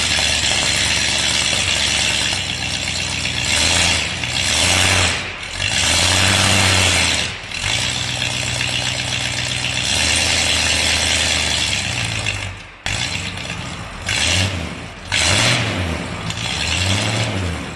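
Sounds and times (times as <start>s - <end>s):
Bel Air 283 V8 with 20-inch glasspack custom exhaust: 0.0s - 17.7s.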